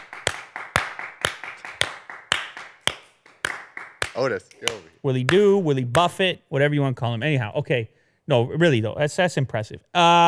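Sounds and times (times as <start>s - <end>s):
hand claps: 0.0s - 6.2s
speech: 4.2s - 10.2s.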